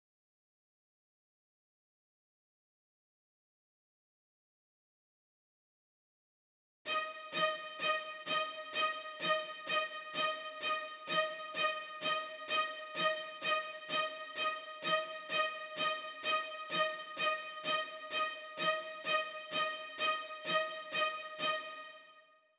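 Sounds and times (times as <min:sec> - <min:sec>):
strings at 128 BPM in G: 0:06.9 - 0:22.2.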